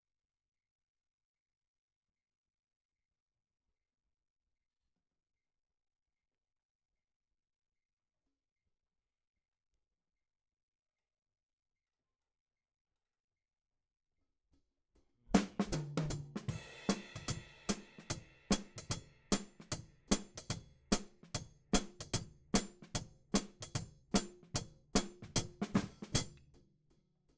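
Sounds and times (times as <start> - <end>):
hi-hat: 15.4 - 26.3.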